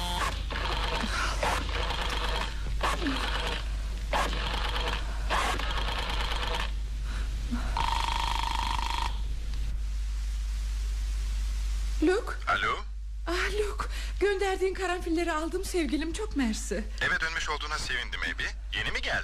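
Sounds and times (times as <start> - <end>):
steady low hum: 0.0 - 19.2
old-style telephone bell ringing: 7.8 - 9.2
speech: 14.5 - 19.2.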